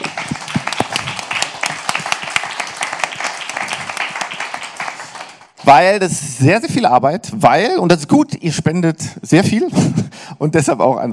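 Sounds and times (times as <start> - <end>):
audience applause: 0.0 - 5.6
speech: 5.7 - 11.1.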